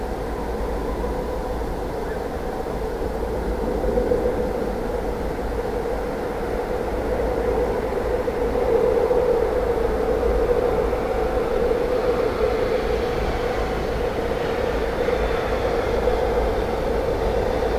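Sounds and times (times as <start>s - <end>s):
Black-crowned Night Heron in Eriskircher Ried: 0.3s - 17.7s.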